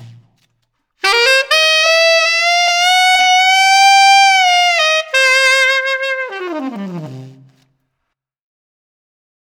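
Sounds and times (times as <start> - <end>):
tenor saxophone altissimo with reverb: 0.0 - 0.4, 1.0 - 7.6.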